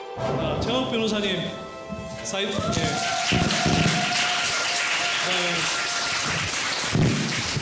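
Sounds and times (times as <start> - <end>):
speech: 0.2 - 1.6, 2.2 - 3.7
audience applause: 2.5 - 7.6.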